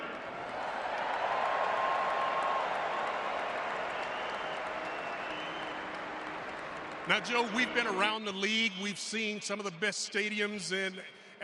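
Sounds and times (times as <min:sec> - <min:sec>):
stadium crowd in the Purple Nation cheering and applauding: 0:00.0 - 0:09.8
speech: 0:07.1 - 0:11.2.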